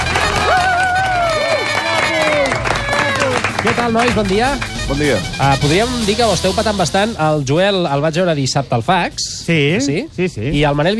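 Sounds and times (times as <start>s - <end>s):
whoops and cheers: 0.0s - 3.6s
audience applause: 0.0s - 5.4s
speech: 3.8s - 10.9s.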